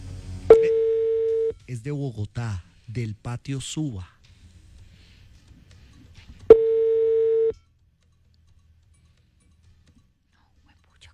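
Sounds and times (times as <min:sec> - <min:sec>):
telephone call tone beep as a call is rejected: 0:00.5 - 0:01.6, 0:06.5 - 0:07.6
speech: 0:01.7 - 0:04.2.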